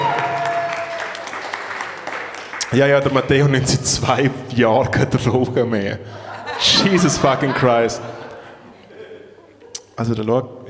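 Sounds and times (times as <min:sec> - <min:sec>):
short applause: 0:00.0 - 0:02.7
speech: 0:02.7 - 0:08.1, 0:10.0 - 0:10.6
laughter: 0:06.1 - 0:09.8.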